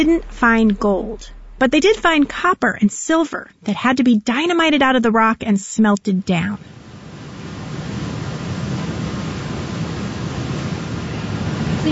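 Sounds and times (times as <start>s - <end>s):
speech: 0.0s - 6.8s
rushing waterfall: 6.8s - 11.9s.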